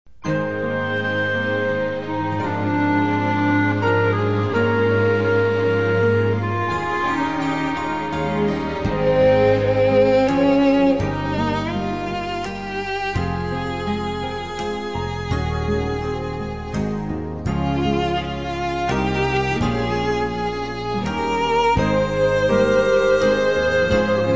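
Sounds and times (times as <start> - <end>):
instrumental praise music: 0.2 - 24.3.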